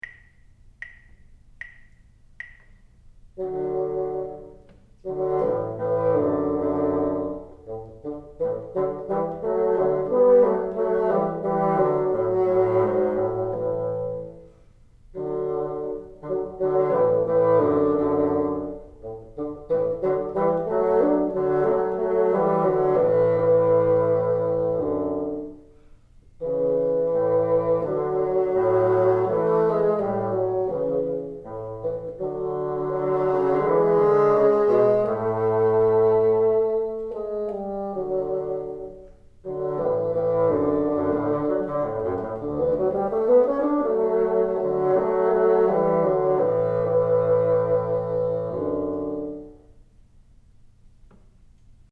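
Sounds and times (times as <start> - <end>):
bassoon: 3.3 - 49.9.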